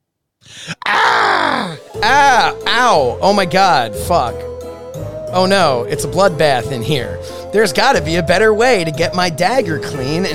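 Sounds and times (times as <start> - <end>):
scream: 0.6 - 1.8
speech: 2.0 - 10.3.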